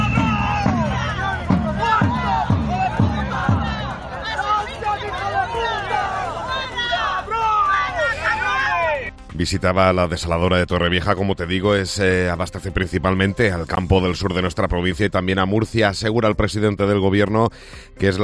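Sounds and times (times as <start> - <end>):
whistles: 0.0 - 0.9
protesting crowd shouting and chanting at visiting politician: 0.0 - 9.3
speech: 9.4 - 18.2.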